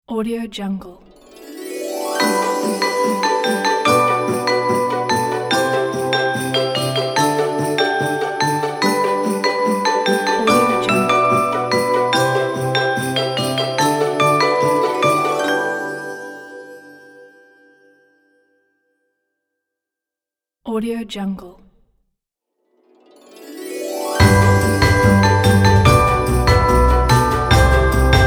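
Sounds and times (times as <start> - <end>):
Christmas intro logo: 1.1 - 18.1, 23.0 - 28.2.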